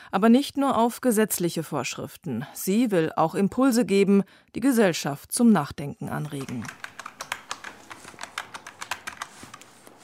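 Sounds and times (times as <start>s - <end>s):
speech: 0.1s - 6.9s
typing on a computer keyboard in an office in Celle: 6.1s - 10.0s.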